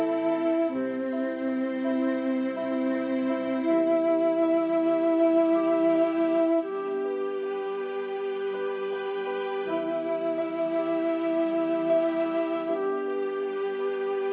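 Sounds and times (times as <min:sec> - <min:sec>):
flute: 0:00.0 - 0:14.3
piano: 0:00.0 - 0:14.3
strings: 0:00.0 - 0:14.3.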